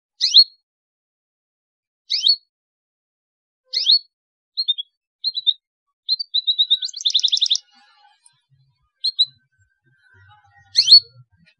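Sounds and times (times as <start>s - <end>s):
canary singing: 2.1s - 2.5s, 3.7s - 11.5s
speech: 11.0s - 11.4s.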